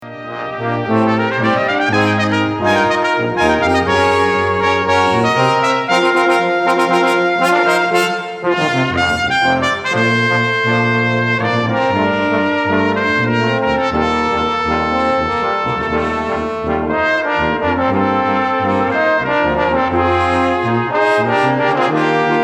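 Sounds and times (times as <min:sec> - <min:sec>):
brass quintet playing: 0:00.0 - 0:22.4.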